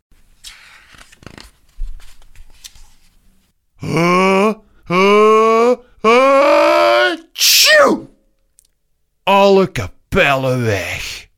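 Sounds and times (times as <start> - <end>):
voice imitating little elephant sneezing: 3.8 - 8.1
speech: 9.7 - 11.1.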